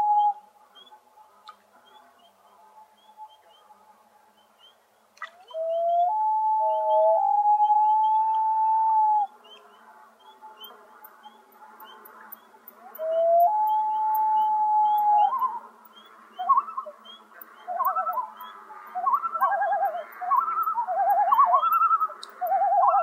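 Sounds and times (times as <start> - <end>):
common loon calling tremolo phrases: 5.4 - 23.0.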